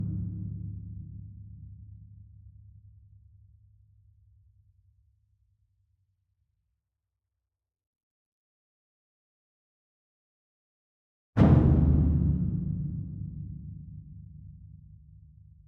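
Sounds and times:
large concert bass drum hit, far: 0:11.4 - 0:14.0.

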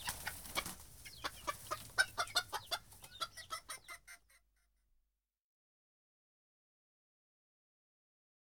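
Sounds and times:
chickens clucking in a henhouse: 0:00.0 - 0:04.5.

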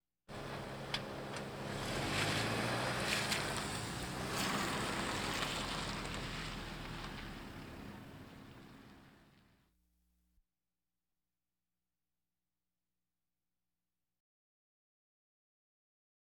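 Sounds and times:
various automobiles: 0:00.3 - 0:09.6.

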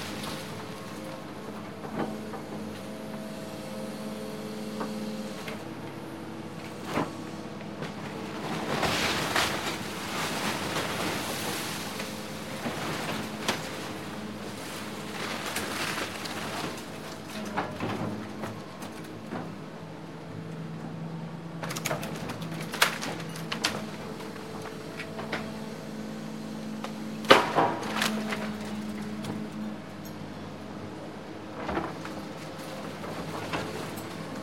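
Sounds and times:
bulldozer wrecking in construction demolition: 0:00.0 - 0:34.4.

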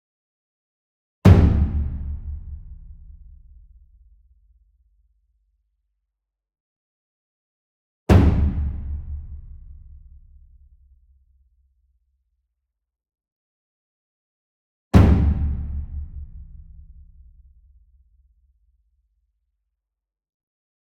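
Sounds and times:
ensemble taiko drum hit of medium strength: 0:01.3 - 0:03.5, 0:08.1 - 0:10.2, 0:15.0 - 0:17.1.

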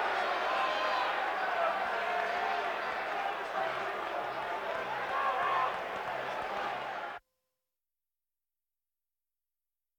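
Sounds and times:
hockey game general atmosphere: 0:00.0 - 0:07.2.

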